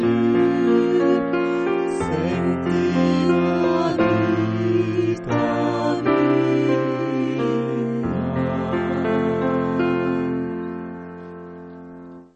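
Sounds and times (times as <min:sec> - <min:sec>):
tenor singing: 0:00.0 - 0:10.8.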